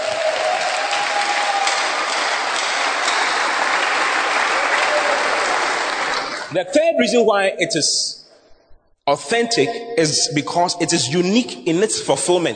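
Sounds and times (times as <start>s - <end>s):
crowd clapping: 0.0s - 6.5s
speech: 6.5s - 8.2s, 9.1s - 12.5s.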